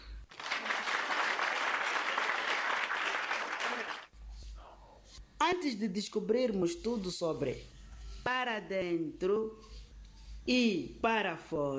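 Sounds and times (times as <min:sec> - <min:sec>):
audience applause: 0:00.3 - 0:04.1
speech: 0:05.4 - 0:09.8, 0:10.4 - 0:11.7.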